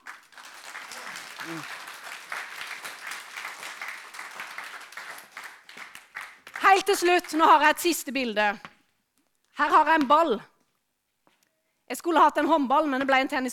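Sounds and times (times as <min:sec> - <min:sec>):
audience applause: 0:00.0 - 0:07.6
brief vocal murmur or cheer: 0:00.0 - 0:07.7
speech: 0:01.4 - 0:01.8, 0:06.7 - 0:08.7, 0:09.6 - 0:10.5, 0:11.9 - 0:13.5.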